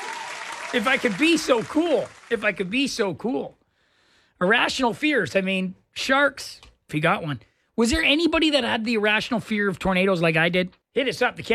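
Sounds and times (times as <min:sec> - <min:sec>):
round of applause: 0:00.0 - 0:03.0
speech: 0:00.7 - 0:03.6, 0:04.4 - 0:11.5.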